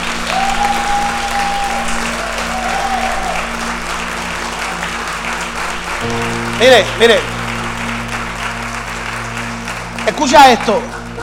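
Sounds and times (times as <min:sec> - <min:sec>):
crowd applause: 0:00.0 - 0:11.2
speech: 0:06.6 - 0:07.3, 0:10.1 - 0:11.0.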